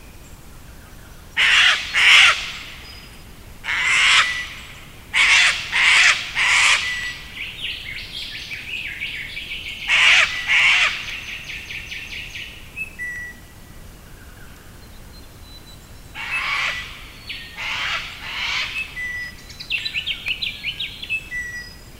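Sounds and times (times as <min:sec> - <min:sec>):
harsh crow-like bird calls along the Isabella River in early morning: 0:01.4 - 0:02.8, 0:03.6 - 0:07.4, 0:09.8 - 0:11.4, 0:16.2 - 0:19.0.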